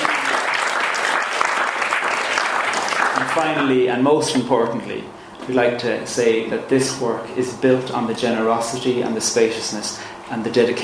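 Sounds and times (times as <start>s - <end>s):
audience applause: 0.0s - 3.7s
speech: 3.4s - 10.8s.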